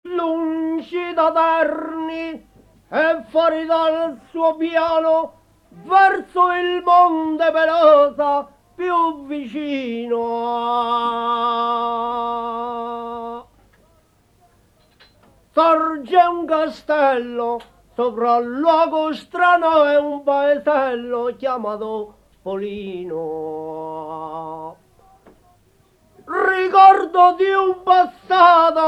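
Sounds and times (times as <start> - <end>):
ottava rima singing in Polino, Umbria: 0.1 - 14.5, 15.2 - 28.8.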